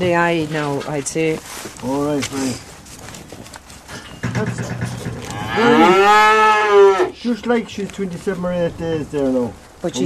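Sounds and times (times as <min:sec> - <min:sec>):
speech: 0:00.0 - 0:02.7, 0:04.4 - 0:04.9, 0:05.6 - 0:10.0
cow mooing: 0:05.2 - 0:07.2.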